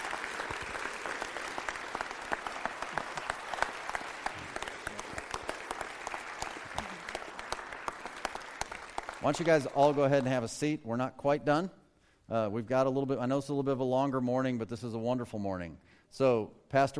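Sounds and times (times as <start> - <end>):
round of applause: 0.0 - 10.4
speech: 9.2 - 16.9.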